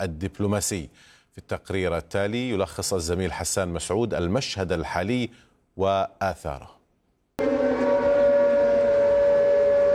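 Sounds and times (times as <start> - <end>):
speech: 0.0 - 6.8, 7.4 - 7.8
air raid warning siren: 7.4 - 9.9.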